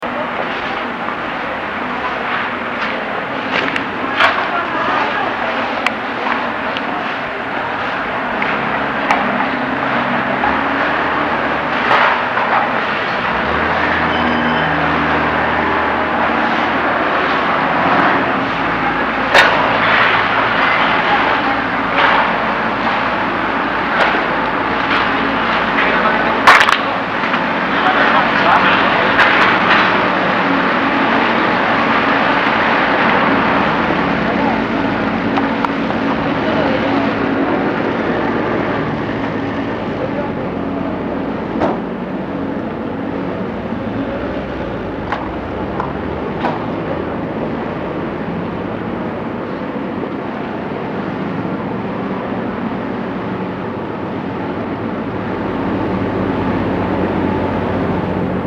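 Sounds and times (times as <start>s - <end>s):
street ambience at a shrine in Mexico: 0.0s - 58.4s.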